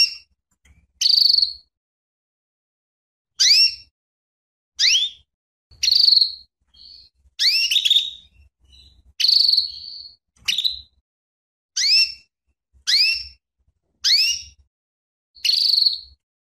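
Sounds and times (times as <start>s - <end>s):
female canary calling with sharp sweeping chirps and buzzy notes: 0.0s - 1.7s, 3.4s - 3.9s, 4.8s - 11.0s, 11.8s - 13.4s, 14.0s - 14.7s, 15.4s - 16.2s.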